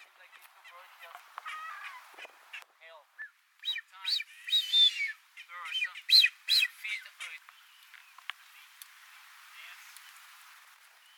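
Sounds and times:
blue-footed booby: 0.0 - 7.5.

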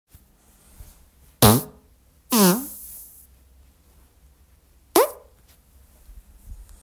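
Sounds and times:
fart: 1.4 - 3.2, 5.0 - 5.3.

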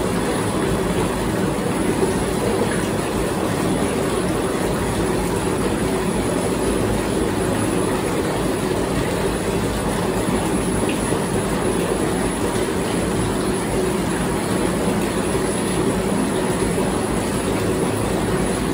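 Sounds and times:
Jacuzzi water: 0.0 - 18.7.

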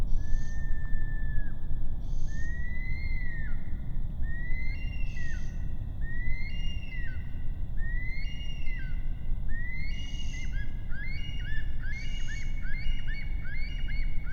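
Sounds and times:
bush stone-curlew wailing whistles: 0.2 - 14.3.

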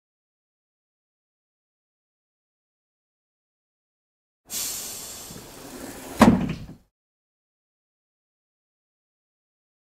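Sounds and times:
school bus: 4.5 - 6.8.

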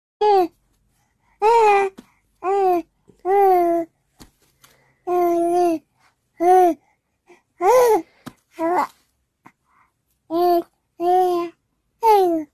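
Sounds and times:
baby babbling without words: 0.2 - 0.5, 1.4 - 3.9, 5.1 - 6.8, 7.6 - 9.0, 10.3 - 12.5.

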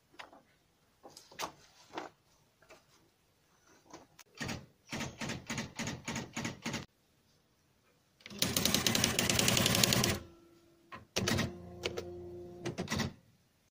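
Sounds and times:
typewriter: 4.4 - 6.9, 8.2 - 10.2, 11.2 - 12.0, 12.6 - 13.2.

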